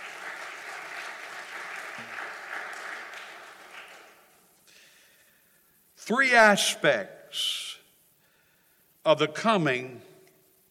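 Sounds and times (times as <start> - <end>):
audience clapping hands: 0.0 - 4.6
speech: 6.1 - 7.7, 9.0 - 10.1.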